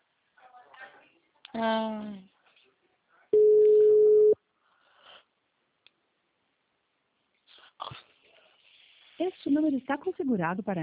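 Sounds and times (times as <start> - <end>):
speech: 1.5 - 2.3, 9.2 - 10.8
telephone busy signal on a Claro line: 3.4 - 4.4
faint breathy sniff-like noises: 4.6 - 5.4, 7.4 - 9.6.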